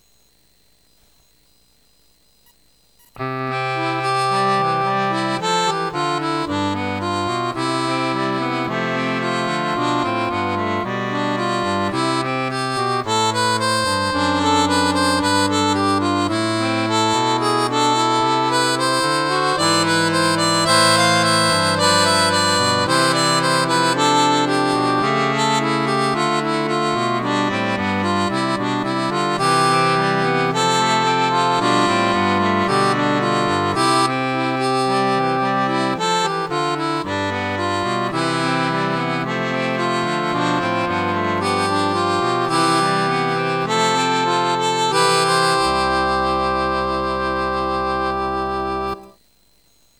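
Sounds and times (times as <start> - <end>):
accordion: 3.0 - 49.2.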